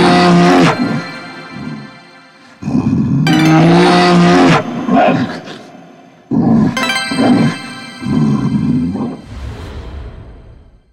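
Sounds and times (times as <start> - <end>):
mega win sound: 0.1 - 2.7, 3.3 - 5.2, 6.8 - 9.5.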